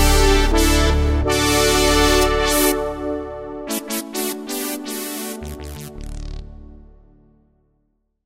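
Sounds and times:
Roland JD-990 analog synthesizer patch: 0.0s - 7.3s.

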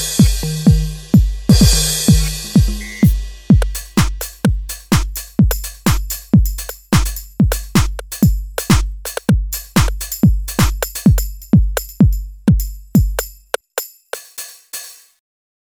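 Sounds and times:
dance drum kit: 0.0s - 15.1s.

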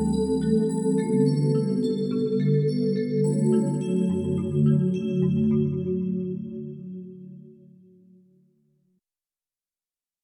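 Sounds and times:
Xtal Shimmer patch on a Korg Radias-R synthesizer: 0.0s - 7.0s.

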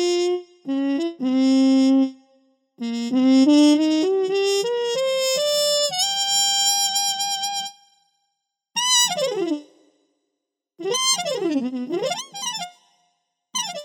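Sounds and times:
synthesized muted trumpet: 0.0s - 2.2s, 2.8s - 7.8s, 8.8s - 9.7s, 10.8s - 12.8s, 13.6s - 13.8s.

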